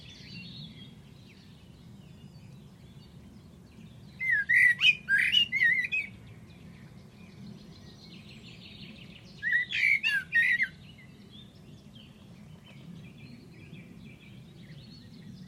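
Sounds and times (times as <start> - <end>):
bird squawky calls: 4.2 - 6.1, 9.4 - 10.8.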